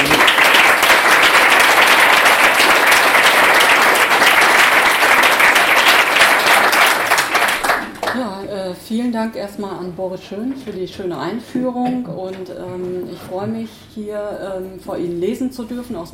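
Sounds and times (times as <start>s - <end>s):
audience applause: 0.0s - 8.2s
speech: 9.2s - 16.1s.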